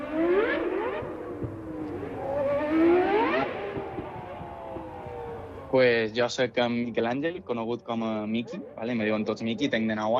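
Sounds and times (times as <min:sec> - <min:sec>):
car engine running and revving: 0:00.0 - 0:05.7
speech: 0:05.8 - 0:10.1.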